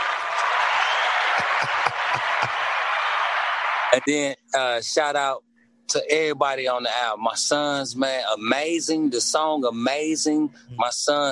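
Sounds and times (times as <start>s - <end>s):
laughter: 0.0s - 3.3s, 3.9s - 11.2s
round of applause: 0.0s - 4.8s
speech: 4.0s - 11.2s.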